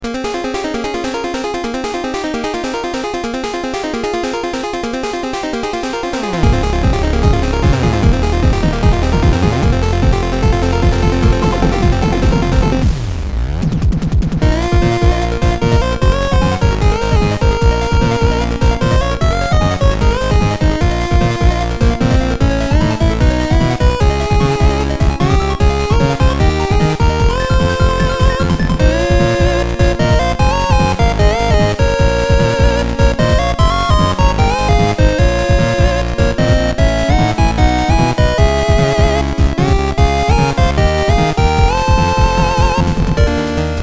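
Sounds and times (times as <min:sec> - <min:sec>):
VRC6 chiptune music: 0:00.0 - 0:13.3, 0:14.4 - 0:43.8.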